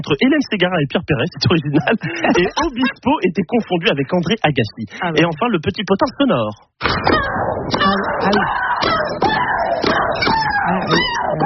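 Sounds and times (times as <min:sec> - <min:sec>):
speech: 0:00.0 - 0:08.6
laughter: 0:01.3 - 0:05.6
tennis player shrieking during play: 0:06.9 - 0:11.4.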